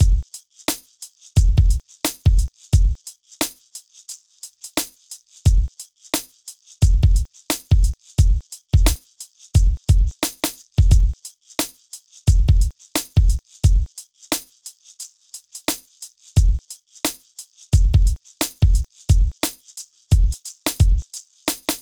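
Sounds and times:
hip hop drums: 0.0s - 0.2s, 1.4s - 3.0s, 6.8s - 9.0s, 9.6s - 11.2s, 12.3s - 13.9s, 16.4s - 16.6s, 17.8s - 21.7s.

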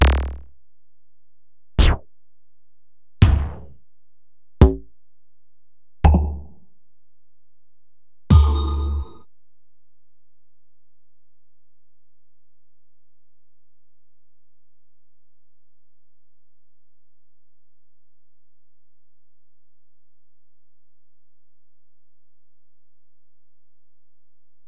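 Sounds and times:
Alesis DM-PRO drum module: 0.0s - 0.4s, 1.8s - 2.0s, 3.2s - 3.8s, 4.6s - 4.8s, 8.3s - 9.2s.

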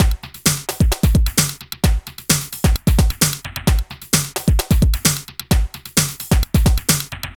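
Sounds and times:
drum loops: 0.0s - 7.3s.

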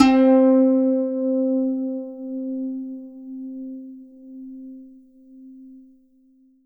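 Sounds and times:
zheng harp note C3: 0.0s - 3.9s.

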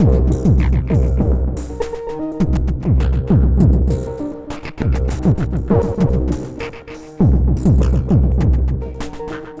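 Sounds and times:
strange drums: 0.0s - 9.5s.

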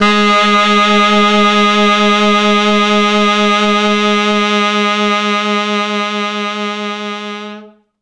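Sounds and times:
Quantum Leap Horns tenor saxophone: 0.0s - 7.9s.

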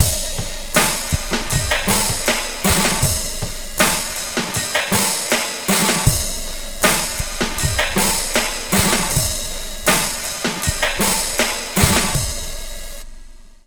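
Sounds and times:
slow dry funk lounge drums: 0.0s - 13.4s.

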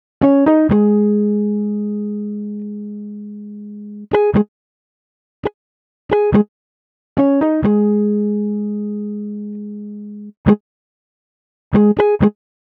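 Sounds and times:
cinematic urban funk guitar: 0.2s - 4.5s, 6.1s - 6.5s, 7.2s - 10.6s, 11.7s - 12.4s.

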